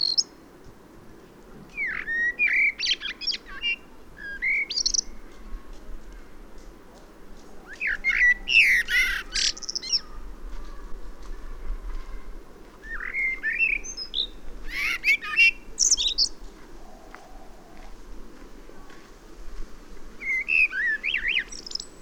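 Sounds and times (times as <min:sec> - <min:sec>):
common blackbird song: 0:00.0 - 0:00.3, 0:01.7 - 0:05.2, 0:07.7 - 0:10.2, 0:12.8 - 0:16.4, 0:20.2 - 0:22.0.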